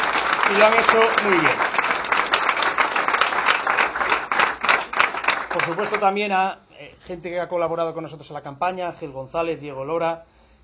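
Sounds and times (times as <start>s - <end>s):
applause: 0.0s - 6.2s
speech: 0.5s - 1.8s, 5.6s - 10.4s.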